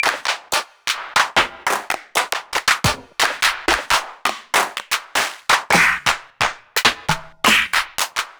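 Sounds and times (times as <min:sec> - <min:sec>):
Akai XR-20 claps: 0:00.0 - 0:08.3.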